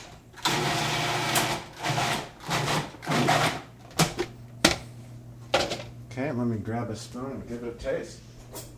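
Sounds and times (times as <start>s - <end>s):
food processor pulsing chopped raw garlic cloves: 0.4s - 4.2s
speech: 6.2s - 8.3s.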